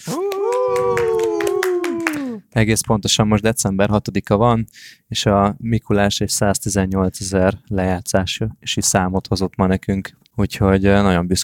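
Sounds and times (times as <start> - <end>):
people clapping: 0.0 - 2.5
speech: 2.6 - 11.4.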